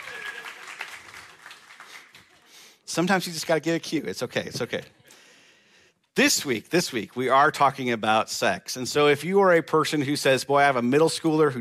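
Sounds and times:
applause: 0.0s - 2.6s
speech: 2.9s - 5.0s, 6.2s - 11.5s.

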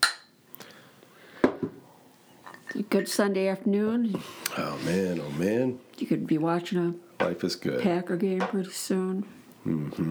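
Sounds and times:
glasses clinking in a toast: 0.0s - 0.3s, 2.4s - 3.2s
speech: 2.9s - 10.0s.

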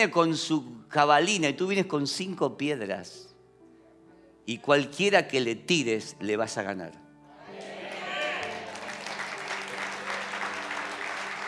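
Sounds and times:
speech: 0.0s - 3.3s, 4.5s - 7.0s
audience applause: 7.5s - 11.4s.

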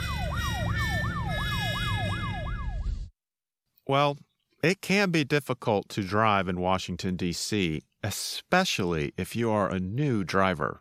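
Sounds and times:
police car siren wailing on a Washington, D.C. street: 0.0s - 3.1s
speech: 3.9s - 10.7s.

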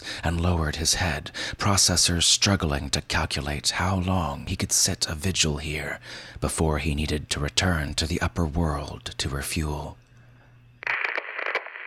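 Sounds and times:
low electrical hum: 0.0s - 11.8s
speech: 0.2s - 10.0s
crackling radio speaker static: 10.8s - 11.8s.

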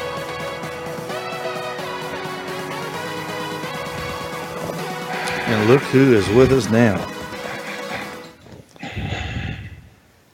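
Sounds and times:
heavy breathing into a microphone: 5.0s - 10.1s
speech: 5.5s - 7.2s.

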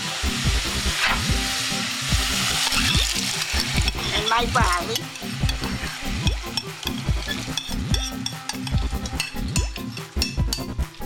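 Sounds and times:
meat and onions sizzling while sauteing in a pot: 0.0s - 11.0s
stirring knocks: 2.9s - 11.0s
speech: 4.3s - 5.2s.

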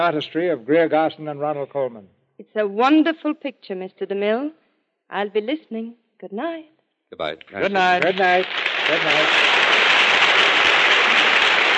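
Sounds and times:
speech: 0.0s - 9.5s
studio audience applause: 7.3s - 11.7s.

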